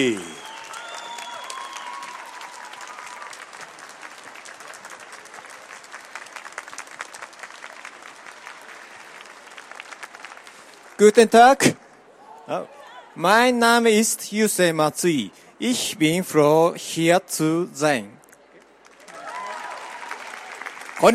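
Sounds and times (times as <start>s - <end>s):
speech: 0.0s - 0.3s, 11.0s - 11.8s, 12.5s - 18.2s, 21.0s - 21.1s
thunderous applause from convention audience: 0.0s - 11.0s, 18.8s - 21.1s
faint whistles: 0.2s - 2.1s.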